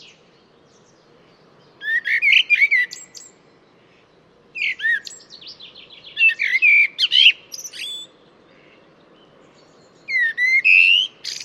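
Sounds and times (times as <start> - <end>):
bird song of quick varied whistled notes with sharp chirps and buzzy elements: 0.0 - 11.4.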